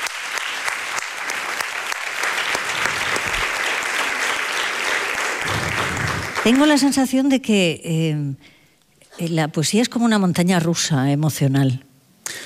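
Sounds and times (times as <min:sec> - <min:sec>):
room full of people clapping: 0:00.0 - 0:07.0
speech: 0:06.4 - 0:08.6, 0:09.2 - 0:11.9.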